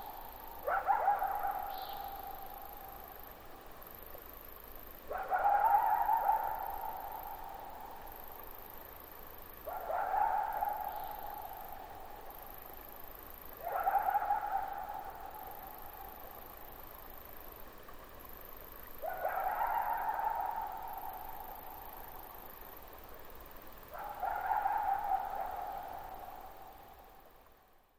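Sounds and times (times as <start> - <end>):
coyote howling: 0.0 - 2.9, 5.1 - 7.8, 9.6 - 12.0, 13.6 - 16.3, 19.0 - 22.2, 24.0 - 27.0.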